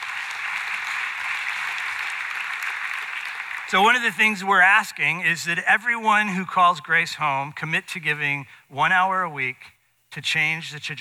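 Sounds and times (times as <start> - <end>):
audience clapping: 0.0 - 4.4
speech: 3.7 - 11.0.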